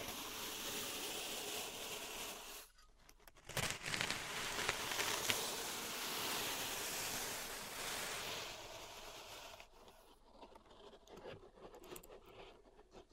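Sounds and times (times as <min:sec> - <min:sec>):
pink salt raked and scraped in a zen garden: 0:00.0 - 0:02.7, 0:03.6 - 0:10.9.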